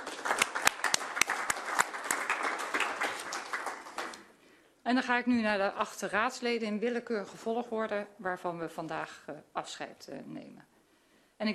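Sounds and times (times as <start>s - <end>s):
audience applause: 0.0s - 4.3s
speech: 4.9s - 10.7s, 11.4s - 11.5s.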